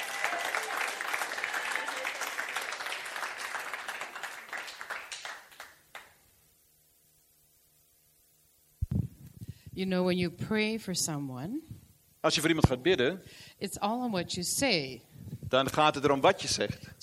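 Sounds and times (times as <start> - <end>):
audience applause: 0.0 - 6.2
faint low hum: 0.0 - 17.0
speech: 9.8 - 17.0.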